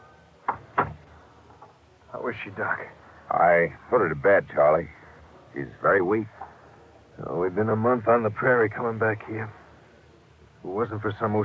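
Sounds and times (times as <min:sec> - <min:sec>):
office door closing: 0:00.5 - 0:01.1
speech: 0:02.2 - 0:06.4, 0:07.2 - 0:09.6, 0:10.6 - 0:11.4.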